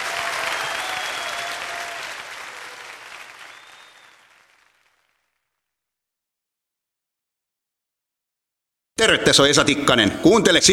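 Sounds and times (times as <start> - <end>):
audience applause for a singer after his vocal performance: 0.0 - 5.5
speech: 9.0 - 10.7.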